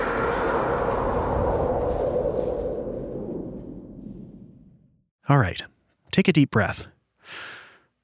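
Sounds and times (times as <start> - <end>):
New York subway train approaching: 0.0 - 2.9
speech: 5.3 - 7.6.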